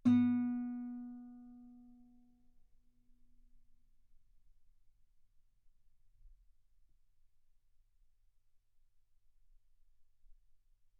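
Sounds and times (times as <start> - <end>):
guitar note B3: 0.0 - 1.8.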